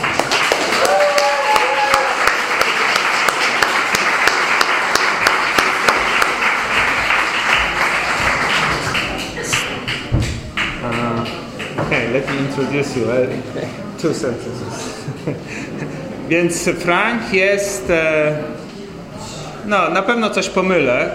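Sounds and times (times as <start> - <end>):
audience applause welcoming a speaker: 0.0 - 12.6
speech: 12.7 - 18.6, 19.7 - 21.1.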